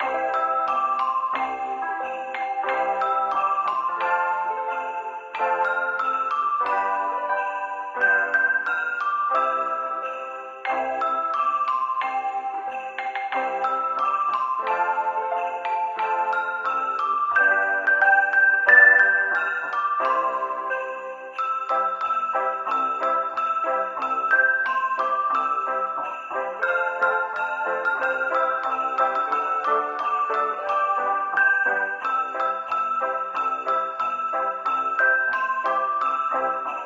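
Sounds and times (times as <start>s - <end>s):
Christmas song in a cafeteria: 0.0s - 36.8s.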